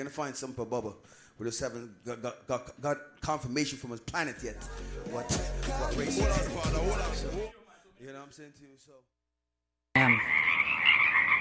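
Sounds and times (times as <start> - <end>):
speech: 0.0 - 9.2, 10.0 - 10.8
Pacific chorus frogs croaking in a dense chorus: 10.0 - 11.3.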